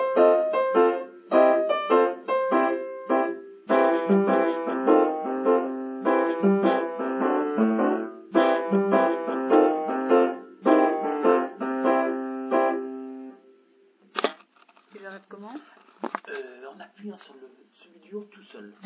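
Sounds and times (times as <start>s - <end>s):
blues music: 0.0s - 13.0s.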